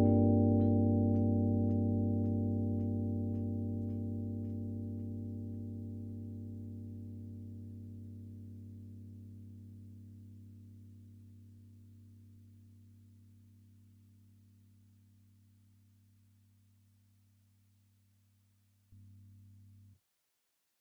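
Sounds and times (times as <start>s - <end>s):
experimental chorus effect with square wave LFO and high feedback: 0.0s - 16.2s.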